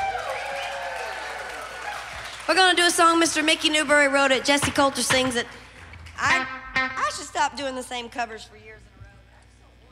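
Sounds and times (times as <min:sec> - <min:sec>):
audience applause: 0:00.0 - 0:03.7
speech: 0:02.5 - 0:05.6, 0:07.4 - 0:08.9.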